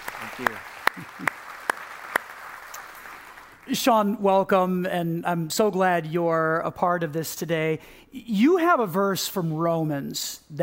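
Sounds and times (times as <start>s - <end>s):
hand claps welcoming a guest: 0.0s - 3.6s
speech: 0.2s - 1.4s, 3.7s - 10.6s.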